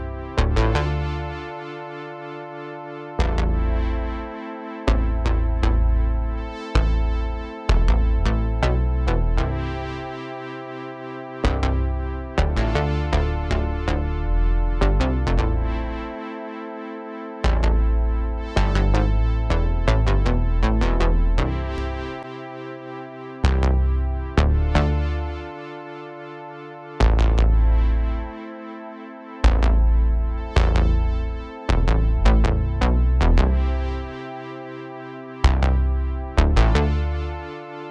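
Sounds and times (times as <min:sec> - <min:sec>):
bass with chorus effect: 0:00.0 - 0:01.6, 0:03.1 - 0:10.3, 0:11.3 - 0:16.2, 0:17.4 - 0:22.3, 0:23.4 - 0:25.6, 0:26.8 - 0:28.4, 0:29.4 - 0:34.6, 0:35.2 - 0:37.8.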